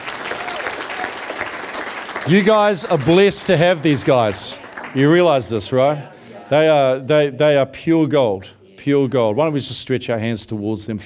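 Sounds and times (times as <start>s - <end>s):
round of applause: 0.0s - 5.6s
speech: 2.2s - 11.0s.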